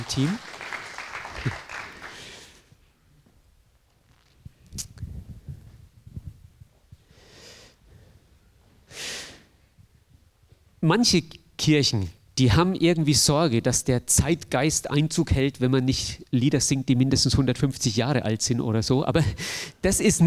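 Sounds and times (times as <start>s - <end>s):
speech: 0.0s - 0.5s, 1.4s - 1.6s, 10.8s - 20.2s
small audience applause: 0.0s - 2.6s.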